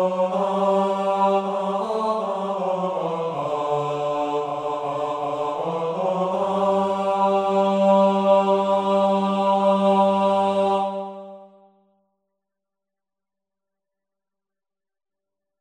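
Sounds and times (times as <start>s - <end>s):
men singing a verse: 0.0s - 11.4s.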